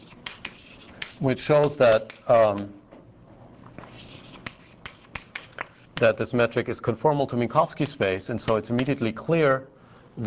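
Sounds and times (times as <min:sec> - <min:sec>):
writing on a board during a physics lecture: 0:00.0 - 0:02.6, 0:03.8 - 0:06.2, 0:08.4 - 0:09.1
speech: 0:01.2 - 0:02.8, 0:06.0 - 0:10.2.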